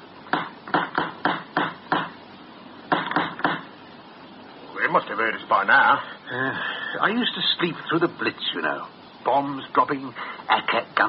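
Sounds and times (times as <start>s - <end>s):
knocking on a door: 0.3s - 2.2s, 2.9s - 3.7s
speech: 5.2s - 11.0s.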